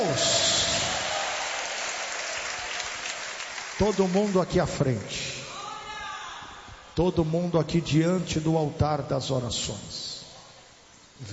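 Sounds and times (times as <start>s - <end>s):
audience applauding: 0.0s - 5.0s
speech: 3.8s - 5.4s, 7.0s - 10.1s.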